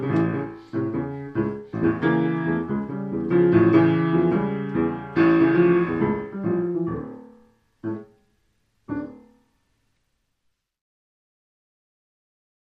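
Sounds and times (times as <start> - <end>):
tango music: 0.0 - 7.0.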